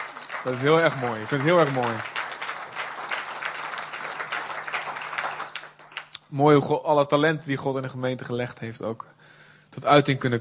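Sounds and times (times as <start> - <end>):
audience applause: 0.0 - 6.2
speech: 0.4 - 2.1, 6.3 - 9.2, 9.8 - 10.3.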